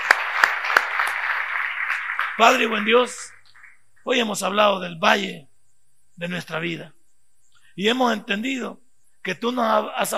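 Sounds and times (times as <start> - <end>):
loud audience applause: 0.0 - 3.8
speech: 2.4 - 3.4, 4.0 - 5.5, 6.2 - 7.0, 7.8 - 10.1.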